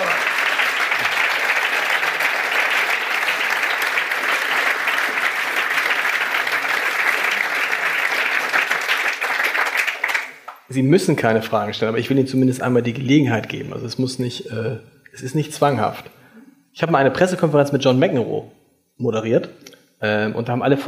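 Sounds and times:
audience applause: 0:00.0 - 0:10.7
speech: 0:10.8 - 0:16.2, 0:16.8 - 0:20.8.

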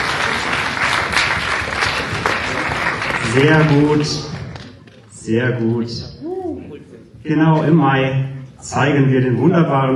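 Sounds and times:
audience applause: 0:00.0 - 0:04.9
speech: 0:03.4 - 0:04.3, 0:05.3 - 0:06.2, 0:07.2 - 0:09.9.

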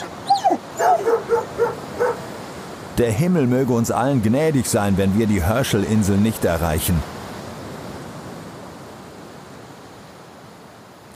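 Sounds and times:
dogs in the cargo hold of an overloaded ship yapping and whining: 0:00.0 - 0:02.3
speech: 0:03.0 - 0:07.2.

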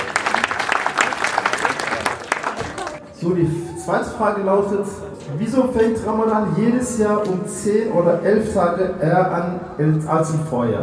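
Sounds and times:
audience applause: 0:00.0 - 0:03.0
speech: 0:03.2 - 0:10.8.

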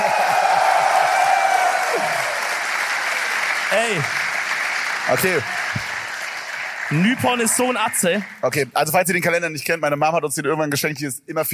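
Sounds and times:
room full of people applauding: 0:00.0 - 0:09.1
speech: 0:03.7 - 0:04.2, 0:05.1 - 0:05.8, 0:06.9 - 0:11.5.

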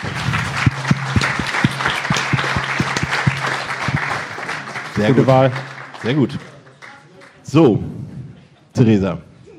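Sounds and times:
audience applause: 0:00.0 - 0:07.4
speech: 0:05.0 - 0:06.5, 0:07.5 - 0:08.0, 0:08.8 - 0:09.3.

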